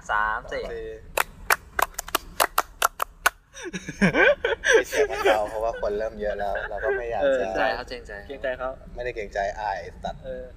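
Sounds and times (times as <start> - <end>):
speech: 0.0 - 1.2, 3.6 - 10.5
hands clapping to close the show: 1.2 - 3.4
laughter: 3.5 - 7.8.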